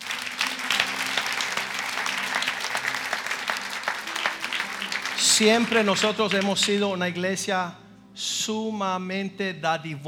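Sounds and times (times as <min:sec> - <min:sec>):
audience applause: 0:00.0 - 0:06.8
speech: 0:05.4 - 0:10.0.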